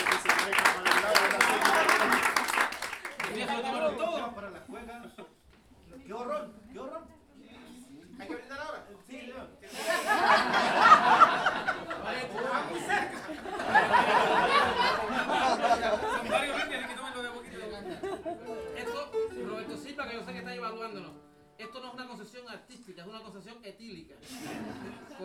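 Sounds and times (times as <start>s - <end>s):
audience applause at a cueca and improvised-verse gathering at a jazz school: 0.0s - 3.7s, 10.6s - 16.8s
laughter: 0.0s - 5.4s, 9.7s - 19.8s, 24.2s - 25.2s.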